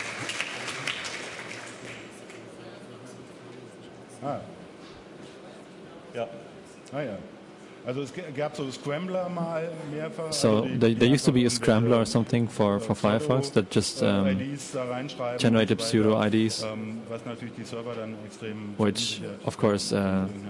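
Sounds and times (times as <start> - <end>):
audience applause: 0.0 - 2.4
speech: 4.2 - 4.6, 6.1 - 20.4.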